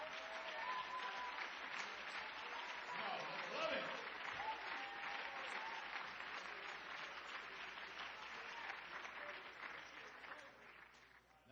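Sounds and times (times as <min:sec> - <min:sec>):
crowd audience clapping hands: 0:00.0 - 0:11.4.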